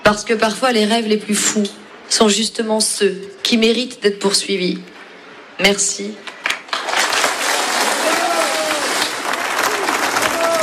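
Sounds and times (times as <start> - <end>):
speech: 0.1 - 5.0, 5.6 - 6.3
crowd applause: 6.7 - 10.6.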